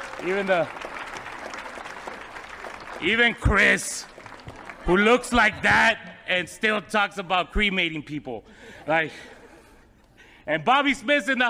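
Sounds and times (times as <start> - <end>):
audience applause: 0.0 - 5.8
speech: 0.2 - 0.8, 3.0 - 4.1, 4.8 - 9.4, 10.4 - 11.4.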